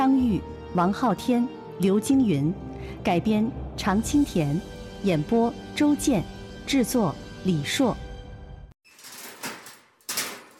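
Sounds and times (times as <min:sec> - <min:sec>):
speech: 0:00.4 - 0:08.0
prison cell door being opened: 0:08.9 - 0:10.5.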